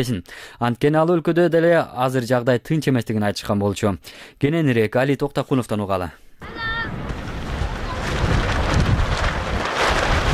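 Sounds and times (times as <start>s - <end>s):
speech: 0.0s - 6.7s
strong wind blowing across a camp of colourful refugee tents: 6.4s - 10.3s.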